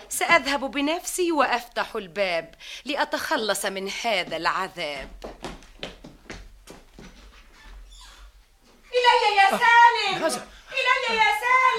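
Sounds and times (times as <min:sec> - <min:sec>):
speech: 0:00.2 - 0:05.4, 0:09.1 - 0:11.7
footsteps approaching: 0:03.9 - 0:09.8
laughter: 0:08.9 - 0:11.2.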